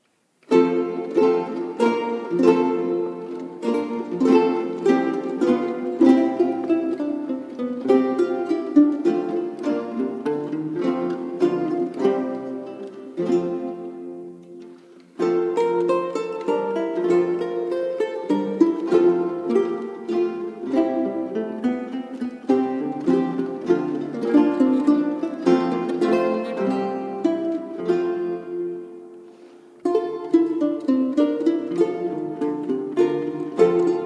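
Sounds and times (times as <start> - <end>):
vihuela quartet playing a pavana: 0.4 - 34.0.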